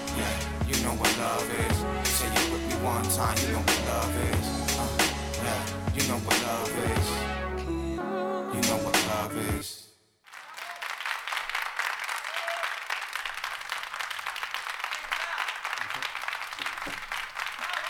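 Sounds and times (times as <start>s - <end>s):
loud music: 0.0s - 9.6s
crowd applause: 10.3s - 17.8s.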